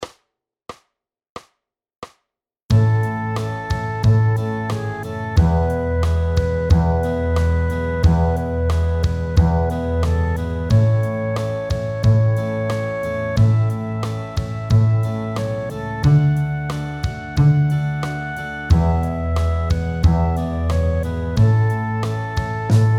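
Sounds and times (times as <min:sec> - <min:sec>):
double bass: 0:02.7 - 0:22.9.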